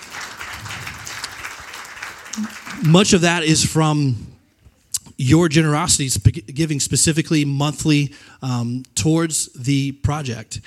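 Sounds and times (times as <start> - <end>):
audience applause: 0.0 - 3.2
speech: 2.4 - 4.3, 5.2 - 10.6.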